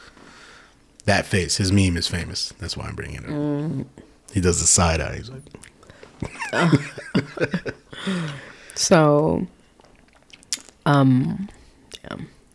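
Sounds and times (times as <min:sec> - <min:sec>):
speech: 0:01.0 - 0:09.6, 0:10.9 - 0:12.4
laughter: 0:06.2 - 0:08.0
wet mouth clicking and sucking on a cough drop: 0:09.8 - 0:10.8.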